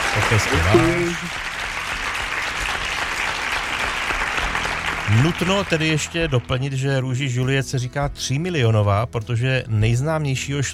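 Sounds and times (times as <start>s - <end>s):
group of people applauding: 0.0s - 6.7s
speech: 0.2s - 1.5s, 5.1s - 10.7s.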